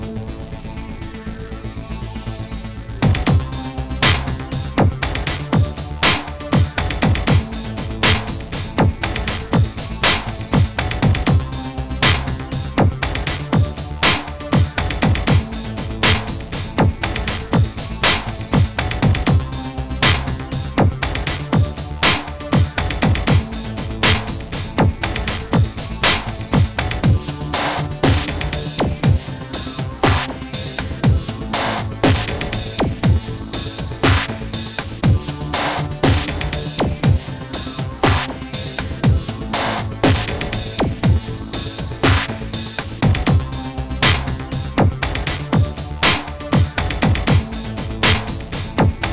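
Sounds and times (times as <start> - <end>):
techno music: 1.3 - 49.1.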